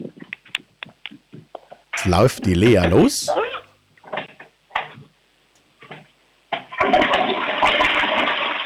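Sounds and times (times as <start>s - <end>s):
speech: 2.0s - 3.4s
loud toilet flush: 6.7s - 8.6s.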